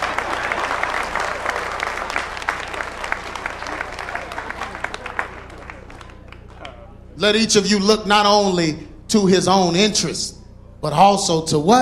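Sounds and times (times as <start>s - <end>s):
audience clapping: 0.0s - 7.0s
faint low hum: 0.0s - 11.8s
speech: 7.2s - 11.8s.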